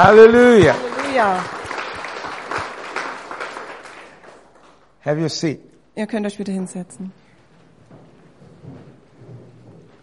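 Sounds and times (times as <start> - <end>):
speech: 0.0 - 1.6, 5.0 - 7.2
church congregation clapping in praise of God during a bilingual service: 0.0 - 5.0.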